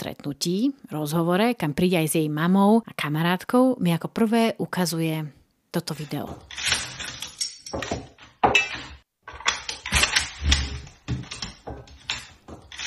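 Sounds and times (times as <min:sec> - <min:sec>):
speech: 0:00.0 - 0:06.7
Kalashnikov rifle being assembled: 0:06.4 - 0:12.8.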